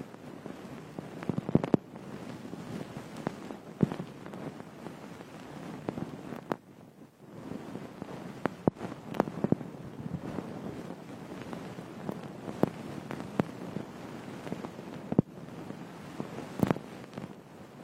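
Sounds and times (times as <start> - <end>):
ear pick scraping a frosted bath ball: 0.5 - 6.6, 7.5 - 15.2.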